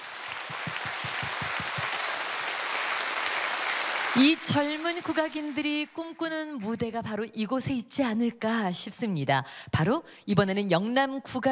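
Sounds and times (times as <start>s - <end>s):
audience applause: 0.0s - 6.0s
speech: 4.2s - 11.4s.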